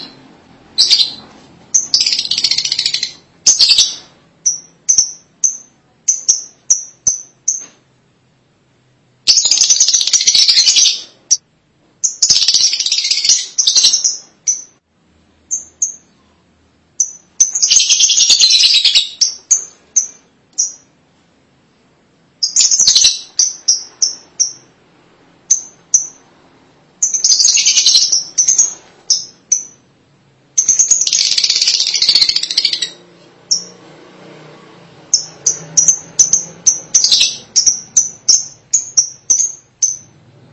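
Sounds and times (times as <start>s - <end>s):
lovebird chattering and squeaking: 0.0s - 7.7s, 9.3s - 11.4s, 12.0s - 14.8s, 17.0s - 20.9s, 22.4s - 24.7s, 27.0s - 29.8s, 30.6s - 33.7s, 35.1s - 40.2s.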